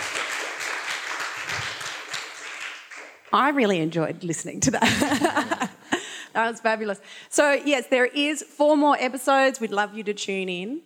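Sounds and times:
audience applause: 0:00.0 - 0:03.3
speech: 0:03.3 - 0:05.7, 0:06.4 - 0:10.8
laughter: 0:04.6 - 0:06.1.

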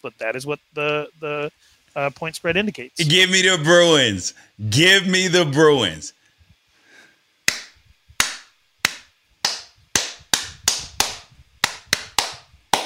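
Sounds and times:
speech: 0:00.0 - 0:06.2
series of hand claps: 0:07.5 - 0:12.8.

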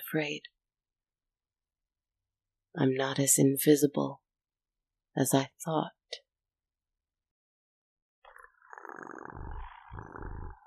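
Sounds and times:
speech: 0:00.1 - 0:00.6, 0:02.8 - 0:04.2, 0:05.2 - 0:06.2
cat purring loudly: 0:08.3 - 0:10.6.

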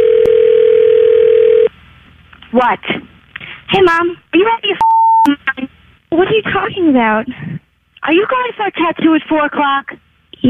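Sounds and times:
telephone dial tone while dialing out: 0:00.0 - 0:01.7
speech: 0:02.5 - 0:03.1, 0:03.7 - 0:07.4, 0:08.0 - 0:10.4.

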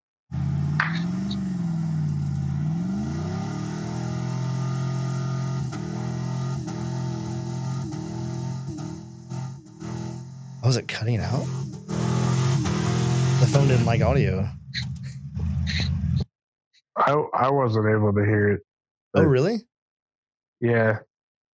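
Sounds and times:
race car engine revving while warming tires: 0:00.3 - 0:16.2
speech: 0:10.7 - 0:11.7, 0:13.5 - 0:14.6, 0:17.0 - 0:19.7, 0:20.6 - 0:21.1.

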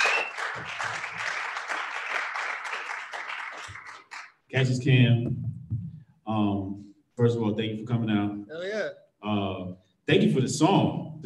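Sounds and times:
round of applause: 0:00.0 - 0:04.5
speech: 0:04.5 - 0:05.5, 0:06.3 - 0:11.2.

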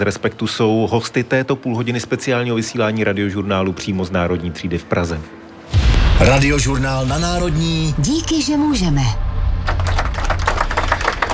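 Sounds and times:
speech: 0:00.0 - 0:09.2
audience applause: 0:09.6 - 0:11.3.

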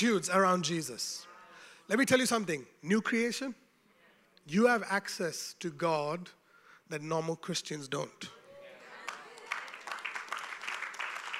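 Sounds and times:
speech: 0:00.0 - 0:01.3, 0:01.9 - 0:03.6, 0:04.5 - 0:08.4
audience clapping: 0:09.0 - 0:11.3.

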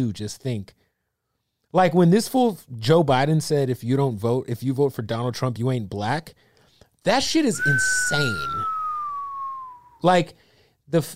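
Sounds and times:
speech: 0:00.0 - 0:00.8, 0:01.7 - 0:08.8, 0:10.0 - 0:11.1
whistle sound effect: 0:07.5 - 0:10.2.

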